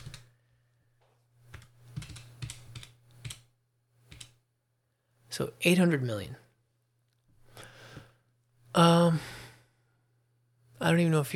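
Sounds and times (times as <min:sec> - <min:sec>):
plastic calculator keys being tapped: 0:01.5 - 0:03.4
speech: 0:05.4 - 0:06.4, 0:08.8 - 0:09.4, 0:10.8 - 0:11.3.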